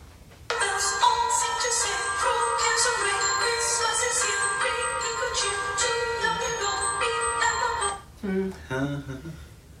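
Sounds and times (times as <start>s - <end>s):
Christmas carol music playing: 0.5s - 8.1s.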